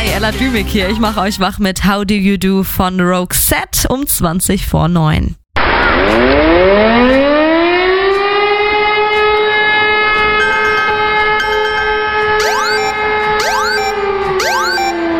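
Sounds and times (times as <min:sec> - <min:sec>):
speech: 0:00.2 - 0:05.4, 0:06.1 - 0:07.3
civil defense warning siren for Germany's nationwide warning day test: 0:05.7 - 0:15.1.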